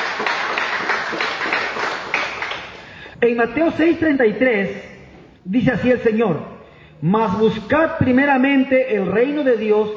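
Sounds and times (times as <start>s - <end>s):
audience applause: 0.0s - 2.8s
speech: 3.2s - 9.9s.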